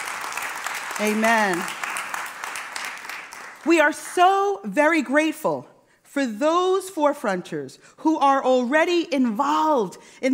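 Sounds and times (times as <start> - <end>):
crowd applause: 0.0 - 3.7
speech: 1.0 - 1.8, 3.6 - 10.3.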